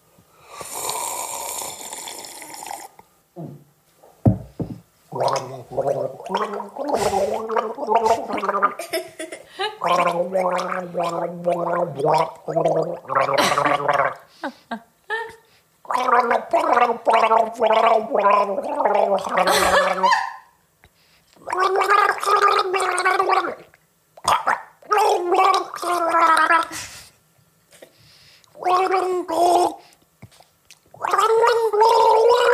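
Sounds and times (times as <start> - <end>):
gargling water while singing: 5.1 - 8.8, 9.8 - 14.3, 15.8 - 20.2, 21.4 - 26.7, 28.6 - 29.8, 30.9 - 32.5.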